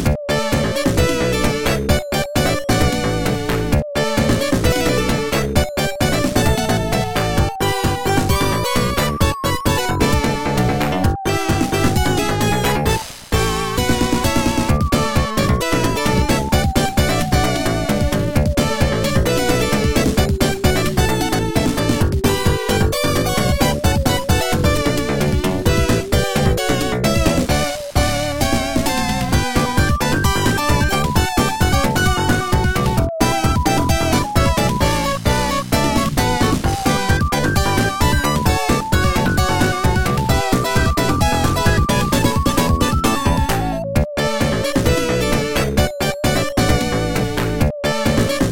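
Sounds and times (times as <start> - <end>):
slot machine background music: 0.1 - 48.5.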